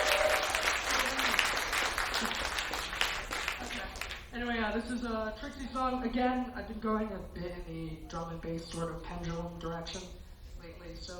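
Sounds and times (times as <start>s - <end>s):
audience applause: 0.0s - 4.3s
speech: 4.8s - 11.1s.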